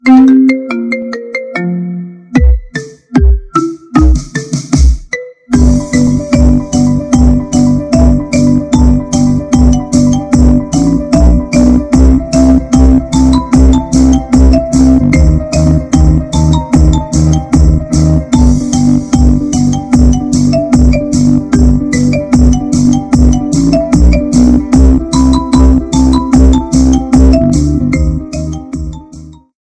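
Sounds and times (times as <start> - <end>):
marimba remix iPhone 13 ringtone: 0.0 - 29.5.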